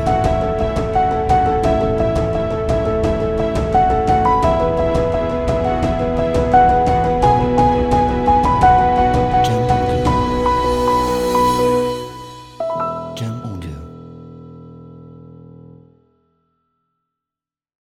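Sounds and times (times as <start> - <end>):
uplifting orchestra: 0.0 - 13.3
uplifting piano: 0.0 - 16.6.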